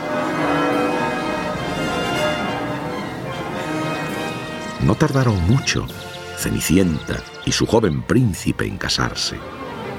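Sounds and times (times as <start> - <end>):
many bells pealing in celebration: 0.0 - 7.8
speech: 4.8 - 9.6.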